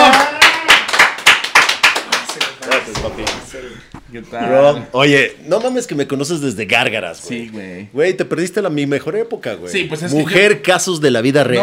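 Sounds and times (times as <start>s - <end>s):
applause: 0.0s - 3.4s
speech: 4.1s - 11.6s.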